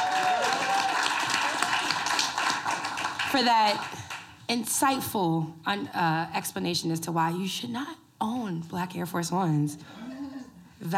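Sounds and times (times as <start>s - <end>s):
audience applause: 0.0s - 4.3s
speech: 3.3s - 10.0s.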